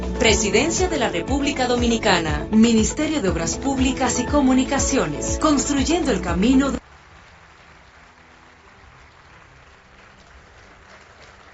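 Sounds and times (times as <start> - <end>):
speech: 0.2 - 6.8
audience clapping: 5.9 - 11.5.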